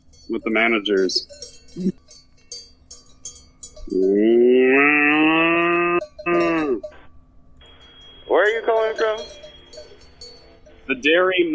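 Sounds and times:
speech: 0:00.3 - 0:02.0, 0:03.9 - 0:04.8, 0:10.9 - 0:11.5
steer mooing: 0:03.8 - 0:07.0.

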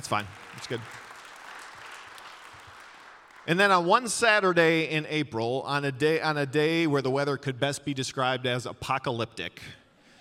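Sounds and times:
speech: 0:00.0 - 0:01.0, 0:03.4 - 0:09.8
audience applause: 0:00.0 - 0:03.6.

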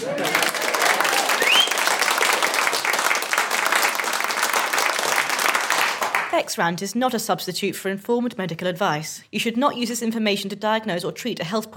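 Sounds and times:
laughter: 0:00.0 - 0:01.6
room full of people clapping: 0:00.0 - 0:06.5
speech: 0:06.4 - 0:11.7.

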